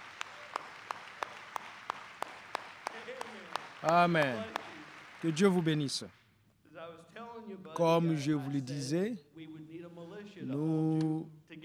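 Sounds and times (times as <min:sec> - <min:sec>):
church congregation clapping in unison: 0:00.0 - 0:06.3
speech: 0:03.8 - 0:04.6, 0:05.2 - 0:06.2, 0:07.4 - 0:09.3, 0:10.4 - 0:11.4.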